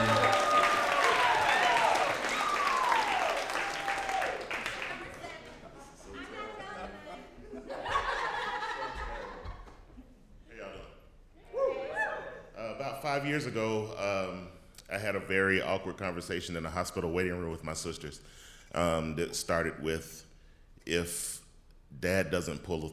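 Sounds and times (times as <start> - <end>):
whoops: 0.0 - 4.5, 11.5 - 12.4
audience clapping: 0.0 - 5.8
laughter: 7.1 - 10.0
speech: 13.2 - 22.9.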